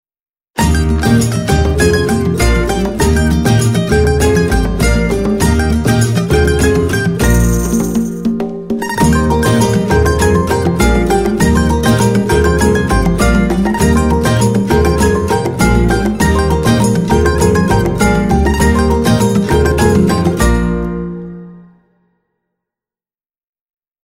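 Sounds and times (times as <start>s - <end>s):
march music: 0.6s - 21.8s.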